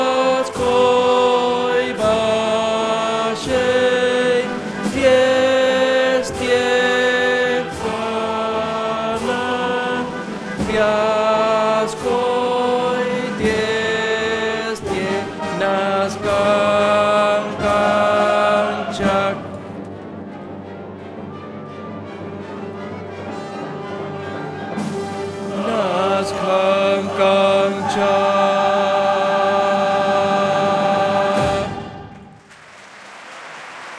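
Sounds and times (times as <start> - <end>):
opera repertoire dance piece for basses: 0.0 - 33.9.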